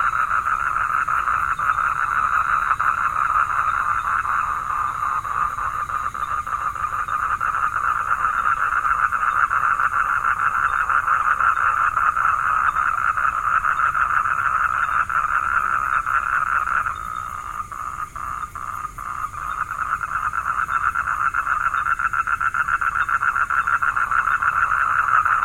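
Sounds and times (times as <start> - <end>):
frog calling in a fast pulsing trill in Vietnam: 0.0 - 25.4.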